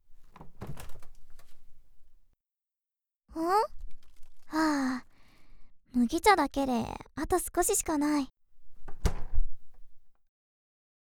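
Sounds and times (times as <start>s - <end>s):
refrigerator door opening: 0.2s - 1.7s, 8.8s - 9.8s
speech: 6.1s - 8.4s.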